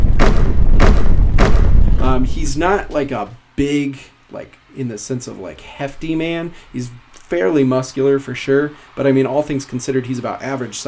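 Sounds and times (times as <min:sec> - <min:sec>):
heavy footsteps slamming onto a platform: 0:00.0 - 0:03.0
low rumble: 0:00.0 - 0:03.1
speech: 0:02.2 - 0:10.8.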